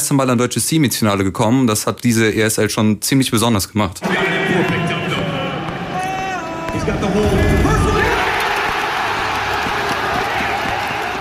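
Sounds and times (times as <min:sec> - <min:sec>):
speech: 0:00.1 - 0:04.9, 0:06.9 - 0:07.6
esports arena crowd roaring and cheering: 0:04.0 - 0:11.2
shouted voices and whoops: 0:07.6 - 0:11.2.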